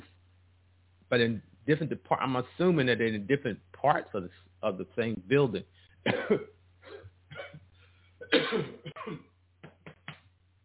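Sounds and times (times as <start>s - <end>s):
speech: 1.1s - 6.6s, 8.3s - 9.3s
person coughing after choking: 6.0s - 7.6s, 8.2s - 9.4s.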